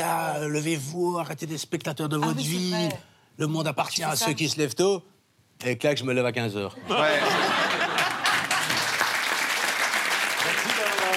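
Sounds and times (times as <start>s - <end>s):
speech: 0.0s - 7.6s
laughter: 6.8s - 9.0s
audience applause: 7.7s - 11.1s.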